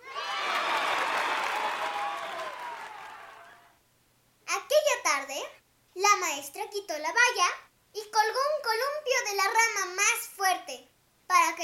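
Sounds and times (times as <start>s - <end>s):
group applause: 0.0s - 3.8s
speech: 6.4s - 11.6s.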